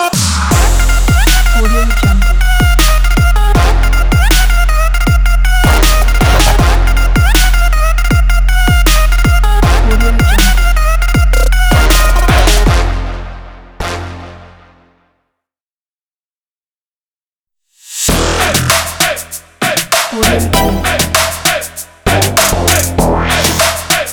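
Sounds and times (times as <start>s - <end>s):
energetic trap hip hop logo: 0.2s - 13.1s, 17.8s - 24.1s.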